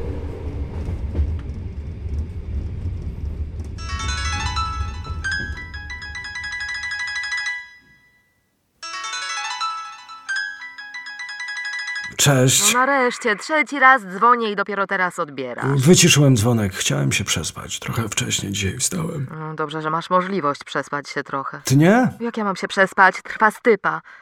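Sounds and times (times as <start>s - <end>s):
train carriage rattling on the rails: 0.0s - 7.6s
speech: 12.2s - 24.2s.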